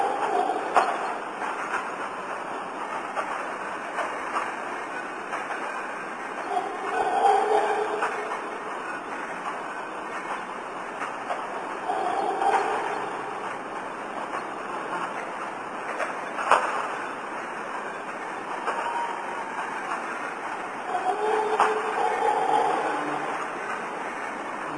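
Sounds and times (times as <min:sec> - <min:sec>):
hissing background noise: 0:00.0 - 0:24.7
howler monkey howls: 0:06.5 - 0:08.5, 0:11.8 - 0:13.4, 0:20.8 - 0:23.5.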